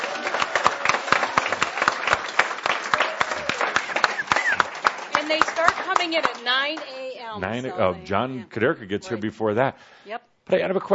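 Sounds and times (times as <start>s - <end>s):
audience applause for the staff: 0.0s - 7.1s
speech: 5.3s - 10.9s.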